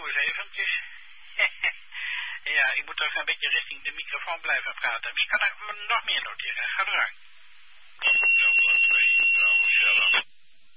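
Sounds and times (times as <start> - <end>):
speech: 0.2 - 1.6, 2.5 - 7.2, 8.0 - 10.3
electronic beep tone: 8.0 - 10.2.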